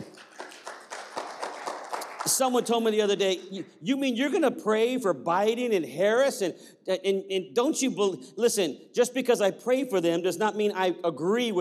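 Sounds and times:
audience clapping: 0.0 - 3.8
speech: 2.2 - 11.6.

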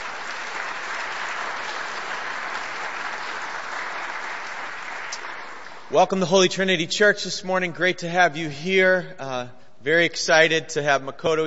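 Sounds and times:
audience applause: 0.0 - 5.9
speech: 5.9 - 11.4.

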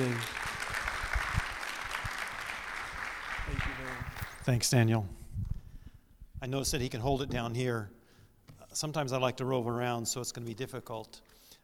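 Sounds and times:
speech: 0.0 - 0.4, 4.5 - 5.2, 6.4 - 8.0, 8.7 - 11.3
church congregation clapping to welcome a guest speaker: 0.0 - 4.5.

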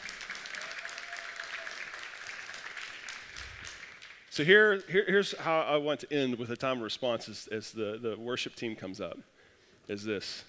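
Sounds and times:
audience applause: 0.0 - 4.2
speech: 4.4 - 9.3, 9.9 - 10.4.

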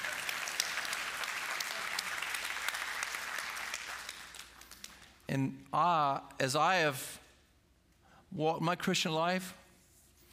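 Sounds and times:
audience clapping: 0.0 - 5.3
speech: 5.3 - 7.2, 8.3 - 9.6.

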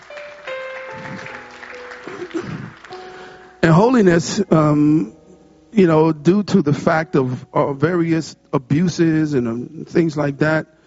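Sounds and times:
audience clapping hands: 0.0 - 3.6
speech: 3.8 - 10.8.

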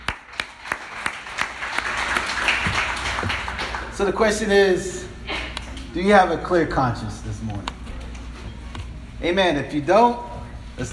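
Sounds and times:
audience applause: 0.0 - 4.1
speech: 4.0 - 5.0, 6.0 - 7.6, 9.2 - 10.9.

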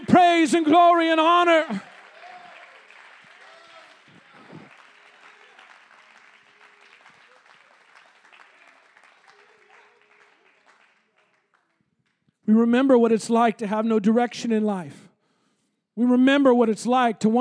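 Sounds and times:
audience clapping hands: 0.0 - 12.4
speech: 0.2 - 1.9, 12.5 - 15.0, 16.0 - 17.3.

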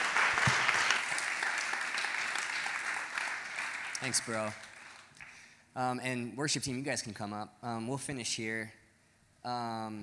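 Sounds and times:
congregation applause at a church service: 0.0 - 5.5
speech: 4.0 - 4.7, 5.8 - 8.8, 9.4 - 10.0.

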